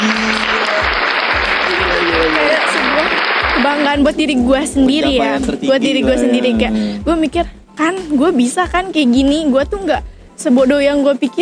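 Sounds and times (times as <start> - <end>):
applause: 0.0 - 4.1
speech: 3.7 - 11.4.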